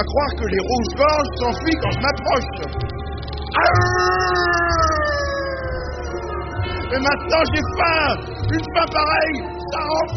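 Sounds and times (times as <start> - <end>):
speech: 0.0 - 5.3, 6.9 - 10.1
dog howling: 3.6 - 6.3.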